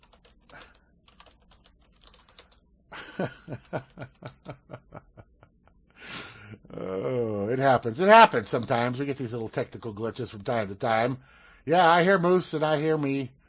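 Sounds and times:
typing on a computer keyboard: 0.0s - 2.6s, 3.4s - 4.4s
laughter: 3.0s - 5.7s
speech: 3.2s - 4.8s, 7.6s - 13.4s.

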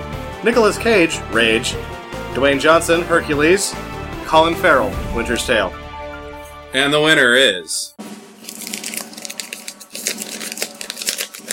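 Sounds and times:
speech: 0.4s - 5.8s, 6.7s - 8.2s
paper envelope being opened: 8.4s - 11.5s.

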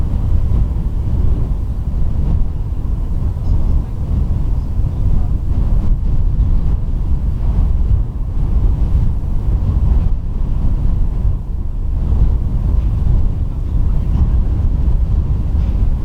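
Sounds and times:
wind roaring around the lighthouse at Rubjerg Knude: 0.0s - 16.0s.

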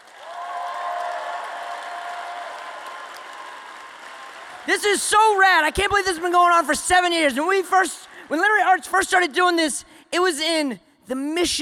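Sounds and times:
crowd whooping: 0.0s - 4.8s
audience applause: 0.0s - 6.0s
speech: 4.7s - 11.5s.

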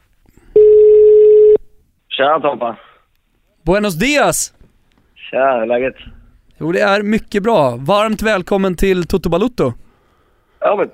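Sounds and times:
telephone ringback tone on an outgoing call: 0.6s - 1.6s
speech: 2.2s - 2.9s, 3.6s - 4.6s, 5.3s - 9.8s, 10.6s - 10.9s.

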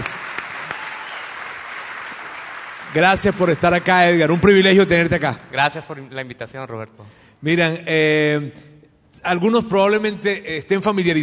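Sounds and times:
audience applause: 0.0s - 4.5s
speech: 2.9s - 11.2s.

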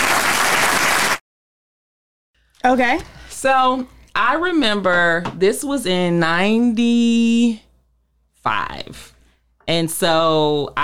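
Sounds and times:
applause: 0.0s - 1.2s
speech: 2.6s - 7.7s, 8.4s - 9.1s, 9.7s - 10.8s.

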